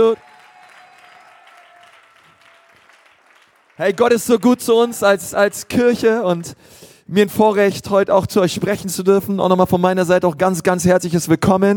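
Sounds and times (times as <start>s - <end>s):
speech: 0.0s - 0.3s, 3.8s - 11.7s
audience applause: 0.0s - 5.9s.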